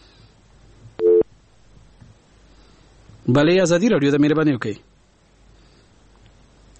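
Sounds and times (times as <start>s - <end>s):
faint noise: 0.0s - 6.7s
telephone busy tone after a caller's line drops on a radio call-in show: 1.0s - 1.2s
speech: 3.3s - 4.9s.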